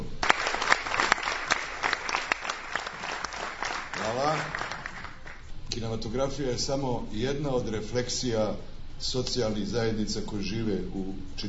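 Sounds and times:
audience applause for Julian Assange: 0:00.2 - 0:05.4
speech: 0:04.1 - 0:04.6, 0:05.8 - 0:11.4.

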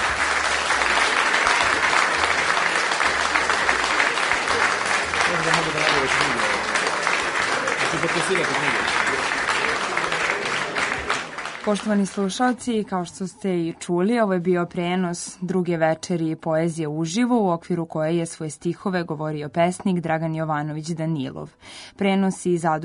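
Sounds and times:
audience applause for a poet after a live poetry reading: 0:00.0 - 0:12.4
speech: 0:08.1 - 0:09.3, 0:11.6 - 0:22.8.

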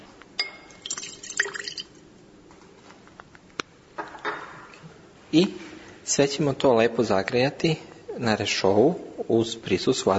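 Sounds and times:
glass clinking: 0:00.4 - 0:02.0
small amount of water poured into a glass container: 0:00.7 - 0:02.0
speech: 0:05.3 - 0:10.1.

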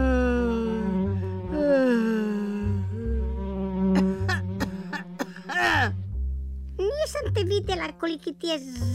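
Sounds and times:
fly buzzing in a room: 0:00.0 - 0:06.0
low pulsing rhythmic background: 0:00.0 - 0:08.9
speech: 0:07.4 - 0:08.9.

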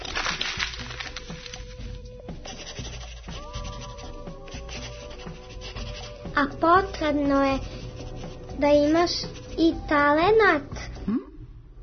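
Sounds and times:
pencil writing on paper: 0:02.3 - 0:10.6
speech: 0:06.4 - 0:07.7, 0:08.6 - 0:11.3.

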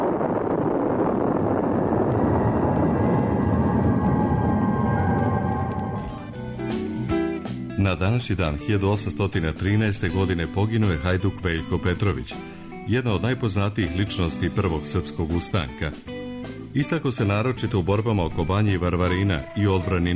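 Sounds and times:
atomic bomb explosion recording: 0:00.2 - 0:06.8
speech: 0:08.0 - 0:16.1, 0:16.8 - 0:20.1.

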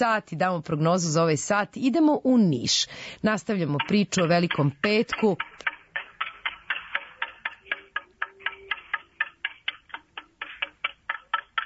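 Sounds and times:
speech: 0:00.0 - 0:05.7
klepalo wooden semantron struck, Church of Emperor Constantine in Niš, Good Friday: 0:03.7 - 0:11.6.

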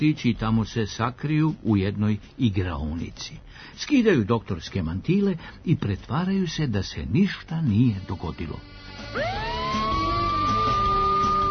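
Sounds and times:
speech: 0:00.0 - 0:09.8
police car sirens: 0:09.0 - 0:11.4.

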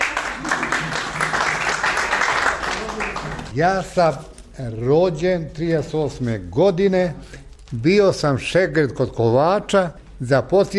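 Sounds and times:
audience applauding a man introduced to speak: 0:00.0 - 0:03.6
speech: 0:03.6 - 0:10.7.

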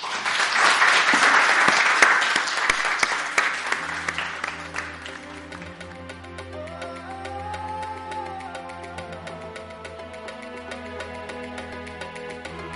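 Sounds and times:
audience applause at a live poetry evening: 0:00.0 - 0:06.0.

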